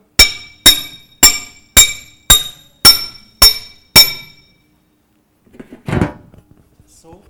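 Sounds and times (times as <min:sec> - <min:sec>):
hammer blows on heated metal: 0:00.0 - 0:04.7.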